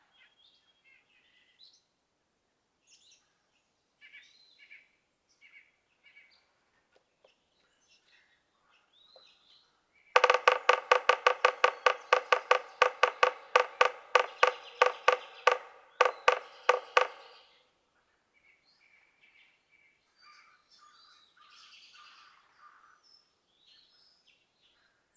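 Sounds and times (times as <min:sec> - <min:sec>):
yellow-bellied sapsucker nasal mewing notes: 0:10.2 - 0:17.5.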